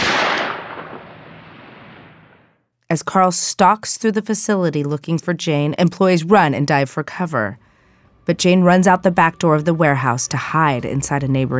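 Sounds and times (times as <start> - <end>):
gunshot: 0.0 - 2.6
speech: 2.9 - 7.6, 8.2 - 11.5.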